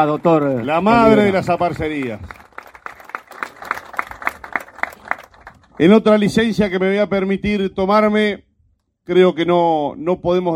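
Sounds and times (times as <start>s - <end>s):
speech: 0.0s - 2.4s, 5.8s - 8.4s, 9.1s - 10.5s
applause: 0.0s - 6.3s.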